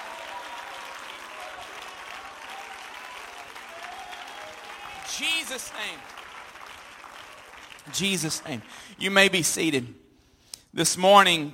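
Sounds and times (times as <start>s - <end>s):
audience shouting: 0.0s - 6.2s
audience hand clapping: 0.0s - 9.6s
speech: 5.1s - 6.2s, 7.9s - 10.0s, 10.8s - 11.5s.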